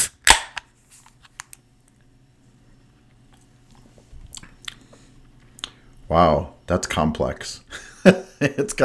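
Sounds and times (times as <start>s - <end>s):
beer can being cracked open: 0.0s - 0.7s
speech: 6.1s - 8.8s.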